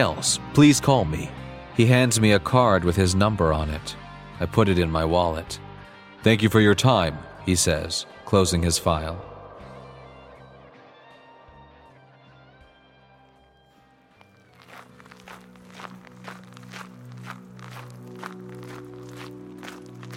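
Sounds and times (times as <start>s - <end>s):
speech: 0.0s - 5.6s, 6.2s - 9.3s
footsteps walking: 14.1s - 20.1s.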